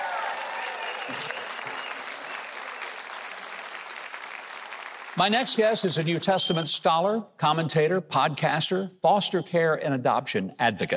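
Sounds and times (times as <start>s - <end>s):
studio audience applause: 0.0s - 6.0s
speech: 5.2s - 10.9s.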